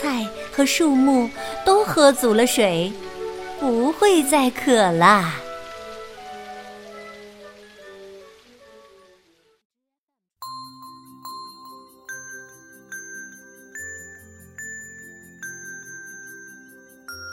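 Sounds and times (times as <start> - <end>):
heavy rain pouring: 0.0 - 9.6
speech: 0.1 - 5.4.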